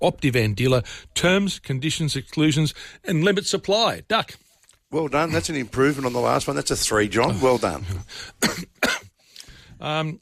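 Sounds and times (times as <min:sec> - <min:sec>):
speech: 0:00.0 - 0:08.8, 0:09.8 - 0:10.2
person coughing: 0:08.4 - 0:09.2.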